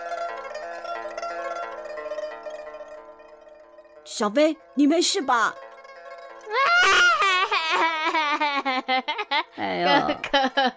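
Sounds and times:
speech: 4.2s - 5.6s, 9.6s - 10.7s
voice acting out loud crying with sobbing: 6.5s - 10.6s.

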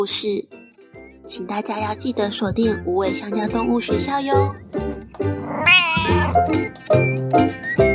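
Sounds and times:
speech: 0.0s - 0.5s, 1.3s - 7.8s
cat meowing: 5.2s - 6.5s.

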